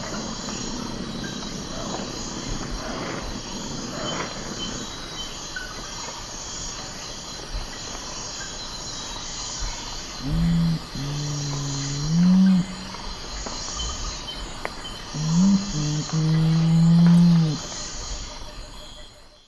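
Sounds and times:
Nothocrax urumutum singing in South American eastern lowlands: 10.2s - 13.1s, 15.2s - 17.6s.

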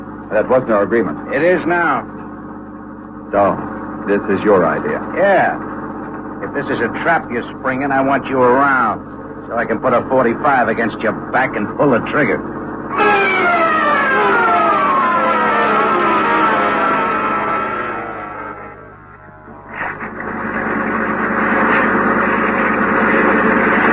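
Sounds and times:
low steady engine hum: 0.0s - 23.9s
speech: 0.3s - 2.2s, 3.3s - 5.7s, 6.4s - 13.1s
Coast Guard boat siren wailing: 12.9s - 19.6s.

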